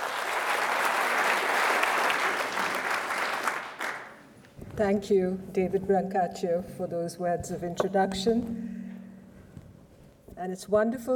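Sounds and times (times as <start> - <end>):
crowd applause greeting Nirupama Rao at an evening event in Camden, Maine: 0.0 - 4.2
speech: 4.8 - 8.6, 10.4 - 11.1.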